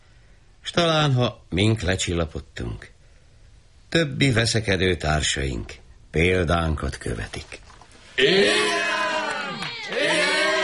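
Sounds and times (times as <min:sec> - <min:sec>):
speech: 0:00.7 - 0:03.0, 0:03.9 - 0:09.0
crowd shouting and cheering: 0:08.2 - 0:10.6.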